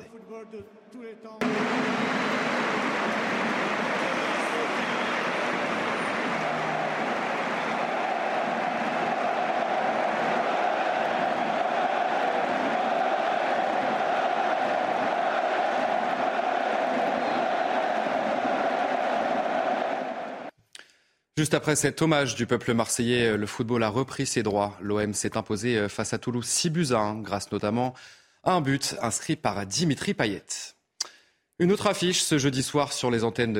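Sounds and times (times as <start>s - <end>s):
speech: 0.3s - 3.5s, 21.4s - 30.8s, 31.6s - 33.5s
stadium crowd applauding in tribute: 1.4s - 20.5s.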